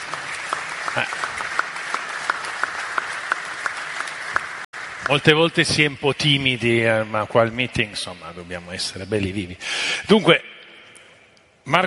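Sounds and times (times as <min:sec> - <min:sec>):
audience applause: 0:00.0 - 0:06.0
speech: 0:01.0 - 0:01.3, 0:05.1 - 0:10.5, 0:11.7 - 0:11.8.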